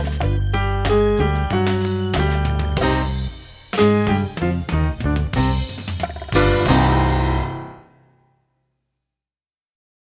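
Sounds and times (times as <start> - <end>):
percussion: 0.0 - 7.8.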